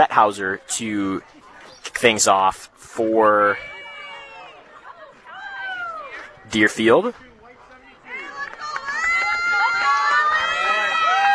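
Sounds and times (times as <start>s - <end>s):
speech: 0.1s - 3.8s, 6.5s - 7.3s
crowd cheering at a softball game between Deerfield and Mineral Point: 3.2s - 11.3s.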